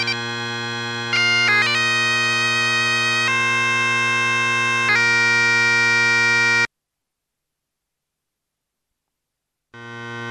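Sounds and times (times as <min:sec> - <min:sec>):
electronic bagpipes: 0:00.0 - 0:06.7, 0:09.8 - 0:10.2.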